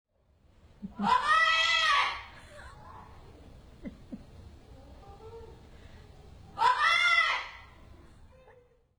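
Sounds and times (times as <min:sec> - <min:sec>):
laughter: 0:00.8 - 0:06.8
neighbour's parrot screaming mom: 0:01.0 - 0:03.2, 0:06.6 - 0:07.8.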